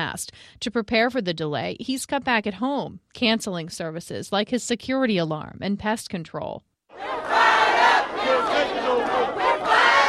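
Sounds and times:
speech: 0.0s - 7.4s
protesters shouting: 6.9s - 10.0s.

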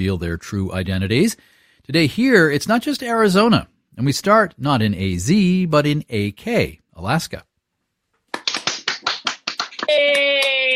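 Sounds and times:
speech: 0.0s - 7.5s, 9.9s - 10.5s
scattered hand claps over Zoom: 8.3s - 10.7s.

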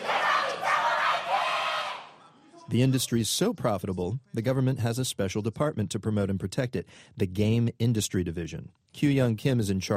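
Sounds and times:
fans cheering at a Korean video game competition: 0.0s - 2.3s
speech: 2.7s - 9.9s.

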